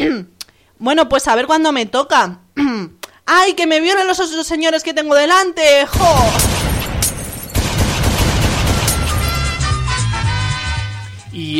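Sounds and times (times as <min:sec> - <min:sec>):
speech: 0:00.0 - 0:06.6, 0:11.4 - 0:11.5
pistol gunshot sound effects: 0:05.9 - 0:09.8.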